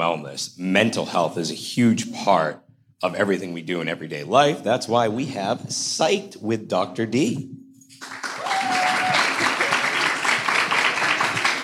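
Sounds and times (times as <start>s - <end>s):
speech: 0.0s - 8.2s
audience applause: 8.0s - 11.6s.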